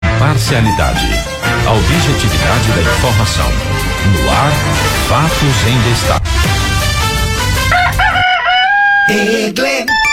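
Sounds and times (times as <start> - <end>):
speech: 0.2 - 6.7, 9.1 - 10.0
rooster crowing: 7.6 - 9.4.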